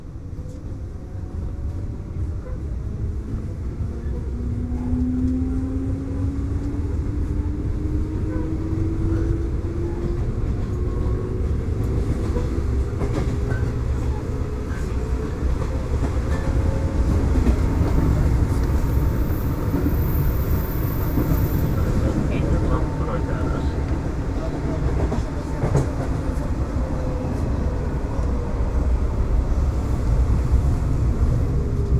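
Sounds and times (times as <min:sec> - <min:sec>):
urban train ride: 0:00.0 - 0:31.9.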